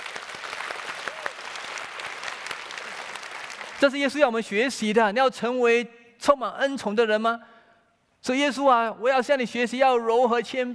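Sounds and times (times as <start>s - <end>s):
audience applause: 0.0s - 3.8s
speech: 3.8s - 7.5s, 8.2s - 10.7s.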